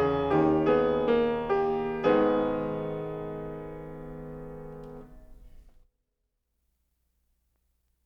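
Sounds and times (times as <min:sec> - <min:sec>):
keyboard fugue: 0:00.0 - 0:05.4.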